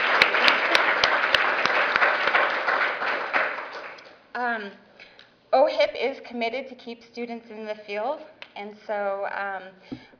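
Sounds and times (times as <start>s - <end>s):
audience applause: 0.0s - 4.1s
speech: 5.9s - 10.1s.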